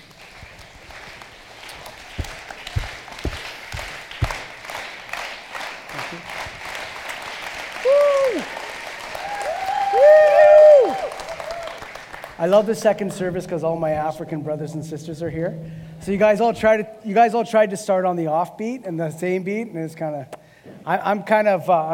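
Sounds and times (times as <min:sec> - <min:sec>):
slow clap accelerating into fast clapping: 0:00.0 - 0:13.3
speech: 0:12.4 - 0:21.9.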